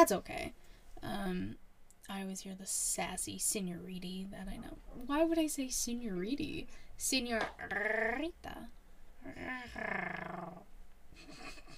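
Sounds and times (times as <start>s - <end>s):
speech: 0.0s - 11.6s
person rolling R in a trill imitating a cat purring: 7.5s - 8.3s, 9.2s - 10.7s.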